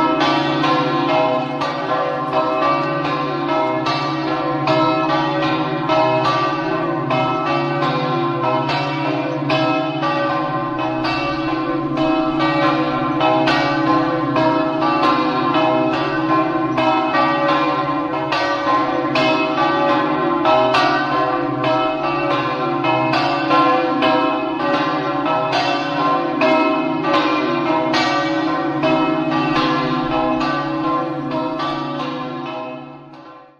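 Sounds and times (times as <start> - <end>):
church bells ringing in Terenzano: 0.0 - 33.5.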